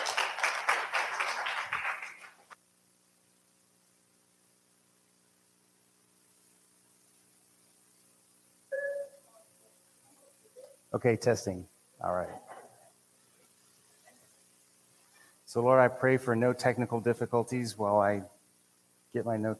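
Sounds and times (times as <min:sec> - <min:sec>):
audience applause: 0:00.0 - 0:02.6
speech: 0:10.9 - 0:12.4, 0:15.6 - 0:18.4, 0:19.1 - 0:19.5.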